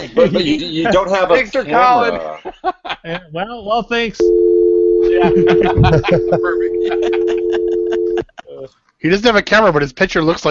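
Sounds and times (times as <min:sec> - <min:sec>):
laughter: 0:00.0 - 0:03.4, 0:05.0 - 0:08.7
speech: 0:00.0 - 0:04.4, 0:05.0 - 0:07.3, 0:08.7 - 0:10.4
phone hang-up tone: 0:04.3 - 0:08.2.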